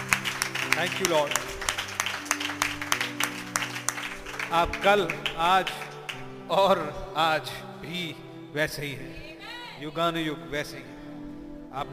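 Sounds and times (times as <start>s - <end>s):
church congregation clapping for the Lord during a service: 0.0s - 6.4s
speech: 0.8s - 1.6s, 4.5s - 5.9s, 6.5s - 9.2s, 9.8s - 10.9s, 11.7s - 11.9s.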